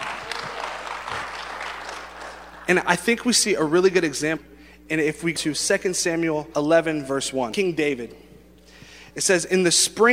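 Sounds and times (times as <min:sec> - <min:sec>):
audience clapping: 0:00.0 - 0:03.2
speech: 0:02.7 - 0:08.3, 0:09.2 - 0:10.1.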